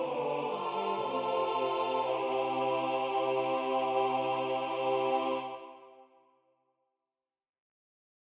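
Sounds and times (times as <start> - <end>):
SATB four-part choir singing: 0.0 - 6.2.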